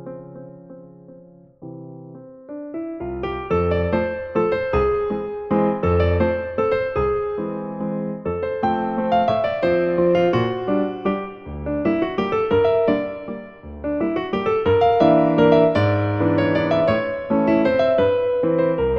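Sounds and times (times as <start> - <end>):
fast lyrical waltz: 2.3 - 18.9.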